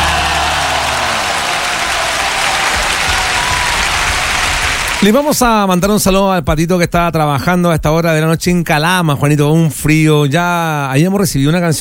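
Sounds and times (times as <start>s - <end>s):
applause: 0.0s - 5.6s
speech: 5.0s - 11.7s.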